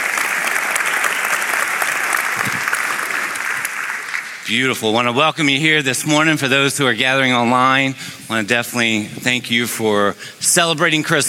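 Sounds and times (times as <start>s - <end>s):
audience applauding: 0.0s - 4.5s
speech: 4.5s - 11.2s.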